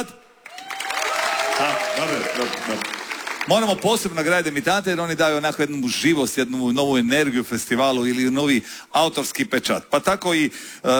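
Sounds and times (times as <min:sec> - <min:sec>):
speech: 0:00.0 - 0:00.2, 0:01.6 - 0:10.9
music festival audience cheering: 0:00.4 - 0:04.7
music festival audience applause greeting a debut songwriter: 0:00.4 - 0:05.0.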